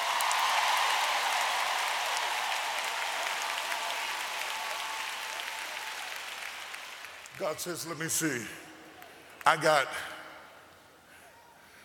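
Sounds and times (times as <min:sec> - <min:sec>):
audience clapping hands: 0:00.0 - 0:08.0
speech: 0:07.4 - 0:08.6, 0:09.4 - 0:10.1.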